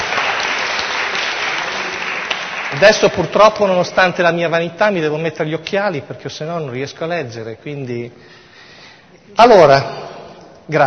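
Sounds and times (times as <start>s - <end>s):
audience applause for the volunteers: 0.0s - 3.4s
speech: 2.8s - 8.4s, 9.3s - 10.1s, 10.7s - 10.8s.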